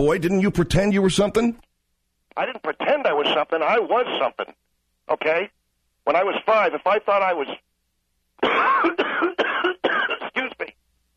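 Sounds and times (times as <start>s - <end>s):
speech: 0.0s - 1.7s, 2.4s - 7.6s, 8.4s - 9.3s
person sneezing: 8.4s - 10.4s.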